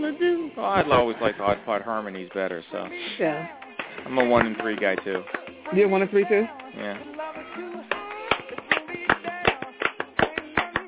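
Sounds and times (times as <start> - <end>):
speech: 0.1 - 8.0
hands clapping on beats one and three: 3.6 - 10.8.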